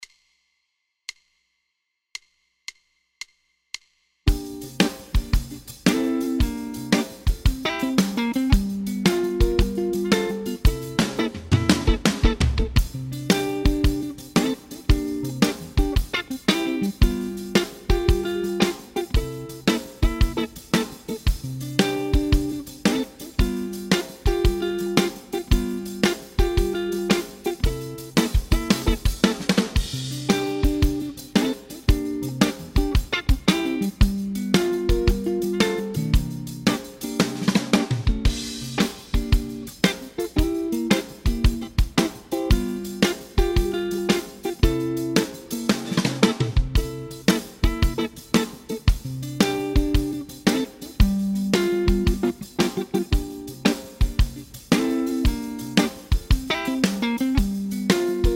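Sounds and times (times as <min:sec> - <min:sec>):
blues arrangement of a Christmas carol: 0:04.3 - 0:58.3.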